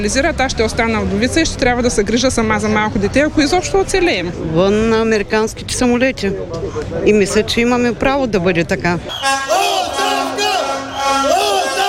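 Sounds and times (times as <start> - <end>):
speech: 0.0 - 9.8
protest crowd chanting a slogan: 9.1 - 11.8.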